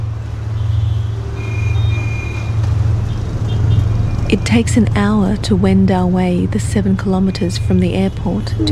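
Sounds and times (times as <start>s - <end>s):
dense motorbike street traffic rumble: 0.0s - 8.6s
vehicle horn beeps: 0.5s - 2.6s
speech: 4.3s - 8.6s.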